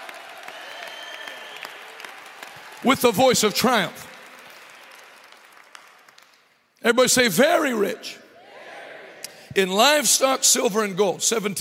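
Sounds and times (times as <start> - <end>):
church congregation clapping in celebration: 0.0 - 7.5
speech: 2.8 - 4.1, 6.8 - 8.2, 9.5 - 11.6.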